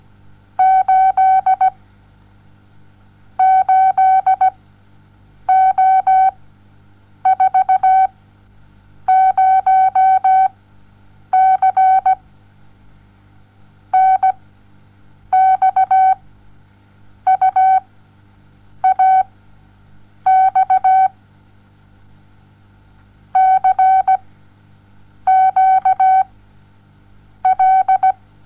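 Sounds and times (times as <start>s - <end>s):
morse code beeps: 0.6s - 1.7s, 3.4s - 4.5s, 5.5s - 6.3s, 7.3s - 8.1s, 9.1s - 10.5s, 11.4s - 12.2s, 14.0s - 14.4s, 15.4s - 16.2s, 17.3s - 17.8s, 18.8s - 19.3s, 20.3s - 21.1s, 23.4s - 24.2s, 25.3s - 26.3s, 27.5s - 28.2s.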